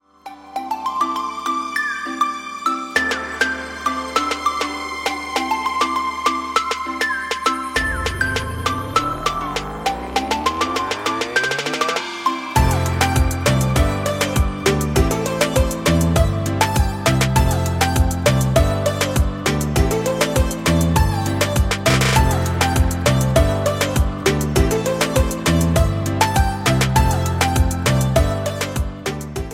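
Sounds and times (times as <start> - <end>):
Chinese style dynamic dance music: 1.9 - 29.5.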